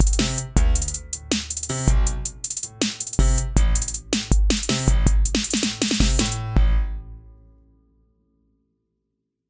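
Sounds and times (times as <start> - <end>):
hi-hats: 0.0 - 6.5
piano: 0.0 - 9.1.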